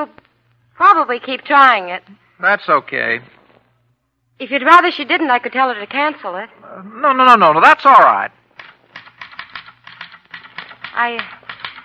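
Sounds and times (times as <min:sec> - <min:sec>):
speech: 0:00.0 - 0:00.2, 0:00.8 - 0:03.4, 0:04.4 - 0:08.4, 0:11.0 - 0:11.4
typewriter keys clattering as someone types a newspaper editorial: 0:08.6 - 0:11.8.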